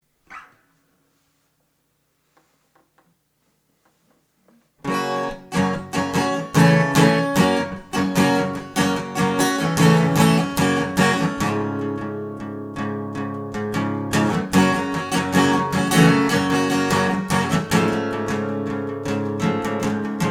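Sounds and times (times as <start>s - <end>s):
instrumental music: 4.8s - 20.2s.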